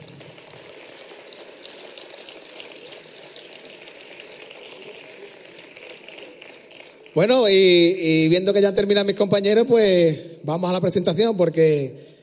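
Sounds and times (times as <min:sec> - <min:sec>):
audience applause: 0:00.0 - 0:08.2
speech: 0:07.2 - 0:12.1.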